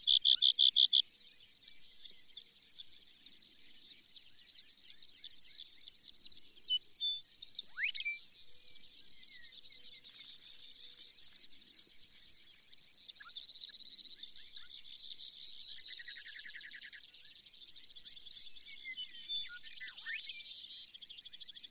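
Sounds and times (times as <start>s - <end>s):
Brewer's sparrow song: 0.0s - 21.6s.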